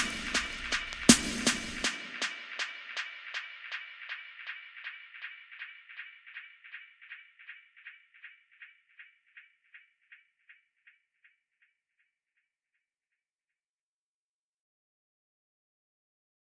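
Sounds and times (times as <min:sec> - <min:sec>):
strumming beat: 0:00.0 - 0:06.3.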